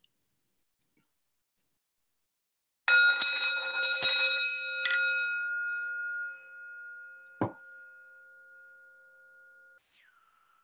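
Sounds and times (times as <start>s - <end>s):
bell ringing to close part of a memorial ceremony: 2.9s - 9.8s.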